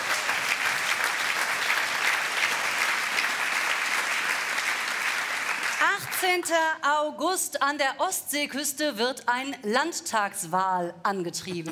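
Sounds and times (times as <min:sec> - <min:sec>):
crowd applause: 0:00.0 - 0:05.9
speech: 0:06.2 - 0:11.6.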